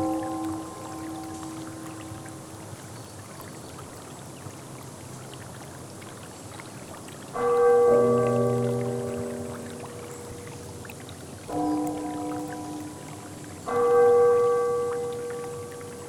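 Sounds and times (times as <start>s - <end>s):
rain: 0.0s - 3.7s, 7.3s - 16.0s.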